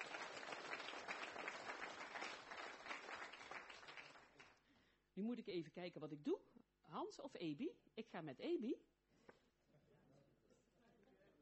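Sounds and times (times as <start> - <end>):
applause: 0.0 - 4.6
speech: 5.2 - 8.9.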